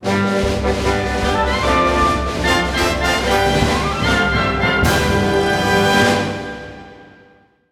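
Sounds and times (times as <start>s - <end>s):
victory fanfare: 0.0s - 7.4s.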